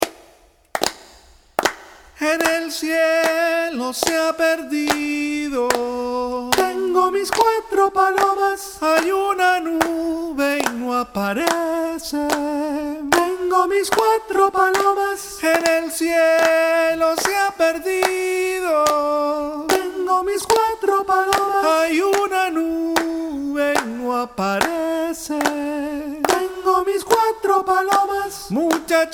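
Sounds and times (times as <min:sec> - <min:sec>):
soprano singing: 0:02.2 - 0:29.1.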